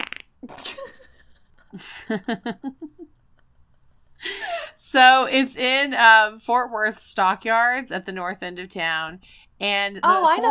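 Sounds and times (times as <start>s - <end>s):
fart: 0.0s - 0.6s
speech: 1.7s - 3.2s, 4.2s - 10.4s.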